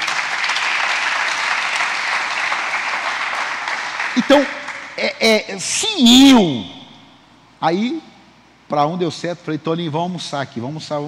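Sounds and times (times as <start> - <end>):
audience applause: 0.0 - 5.0
speech: 4.2 - 6.8, 7.6 - 8.1, 8.7 - 11.0.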